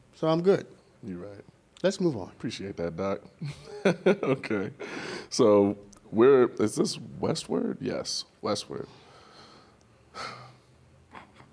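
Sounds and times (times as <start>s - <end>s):
speech: 0.2s - 9.0s
deep breaths before reading aloud: 4.8s - 5.3s, 8.9s - 10.8s.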